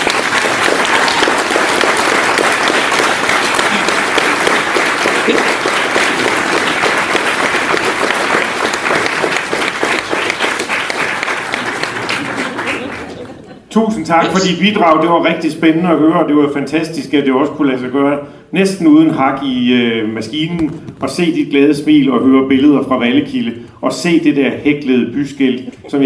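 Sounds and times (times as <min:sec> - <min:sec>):
audience applause: 0:00.0 - 0:13.6
laughter: 0:05.2 - 0:06.4, 0:11.5 - 0:15.1
speech: 0:13.8 - 0:26.0.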